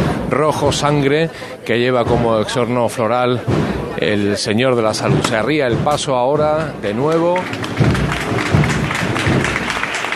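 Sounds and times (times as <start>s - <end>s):
speech: 0.3s - 8.0s
crowd applauding a religious procession: 5.3s - 10.1s.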